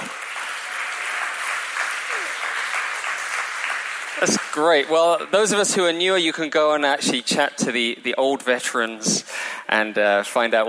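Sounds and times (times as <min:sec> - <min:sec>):
audience applause: 0:00.0 - 0:05.4
speech: 0:04.2 - 0:10.6.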